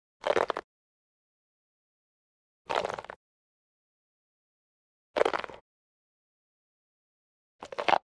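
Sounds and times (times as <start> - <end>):
biting crunch: 0.2 - 0.6, 2.7 - 3.2, 5.2 - 5.6, 7.6 - 8.0.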